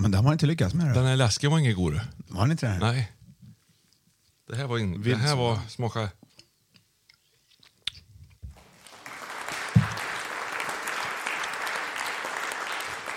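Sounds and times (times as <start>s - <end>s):
speech: 0.2s - 3.2s, 4.5s - 6.2s
applause: 8.6s - 13.1s.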